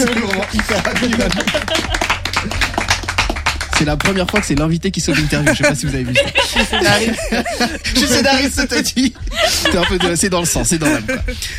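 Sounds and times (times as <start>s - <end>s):
speech: 0.0s - 2.0s, 3.9s - 11.5s
laughter: 0.0s - 3.0s, 5.0s - 11.4s
applause: 0.0s - 4.8s.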